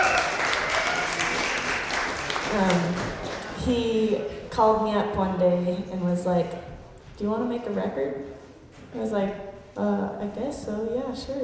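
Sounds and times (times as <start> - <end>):
audience applause: 0.0 - 3.6
speech: 2.5 - 3.0, 3.6 - 11.4.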